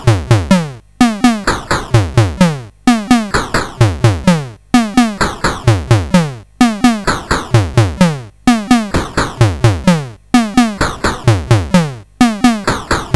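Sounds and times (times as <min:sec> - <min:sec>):
drum demo: 0:00.0 - 0:13.1.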